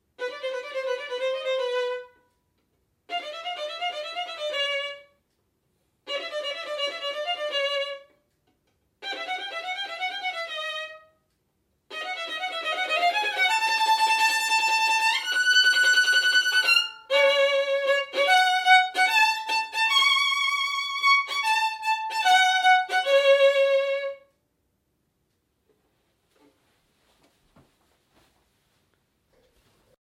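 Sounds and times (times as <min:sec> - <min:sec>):
violin: 0:00.2 - 0:02.4, 0:03.1 - 0:05.3, 0:06.0 - 0:11.3, 0:11.9 - 0:24.4.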